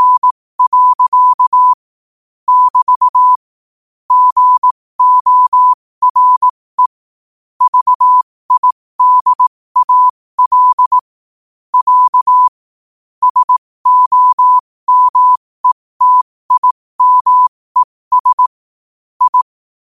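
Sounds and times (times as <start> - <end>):
morse code at 5 wpm: 0.0 - 1.8, 2.5 - 3.5, 4.1 - 7.0, 7.6 - 11.1, 11.7 - 12.6, 13.2 - 18.6, 19.2 - 19.5.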